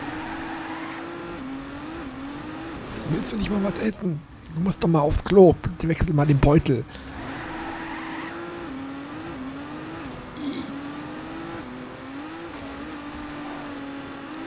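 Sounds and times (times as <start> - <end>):
race car engine in the video game Trackmania: 0.0 - 14.4
speech: 3.1 - 7.1.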